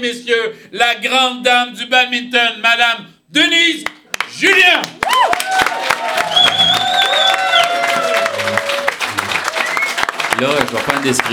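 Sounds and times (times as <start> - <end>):
speech: 0.0 - 5.4, 10.4 - 11.3
large crowd applauding: 4.1 - 11.3
crowd cheering and shouting: 5.0 - 9.8
high whistles: 6.2 - 8.0, 9.5 - 10.1.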